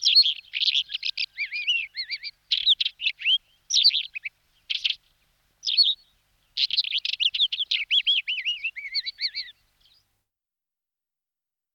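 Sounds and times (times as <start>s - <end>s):
Isabelline wheatear Oenanthe isabellina calling: 0.0s - 5.0s, 5.6s - 9.6s.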